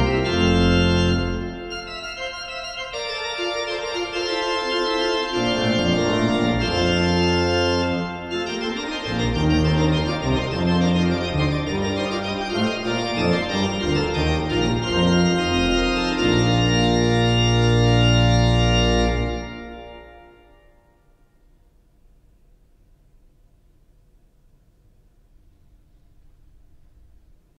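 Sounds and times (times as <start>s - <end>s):
prelude in a major key: 0.0s - 21.6s.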